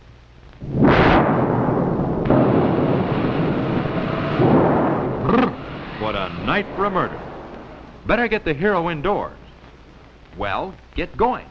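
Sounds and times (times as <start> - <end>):
thunderstorm sound effect: 0.6 - 8.3
speech: 6.5 - 7.2, 8.1 - 9.4, 10.4 - 11.4.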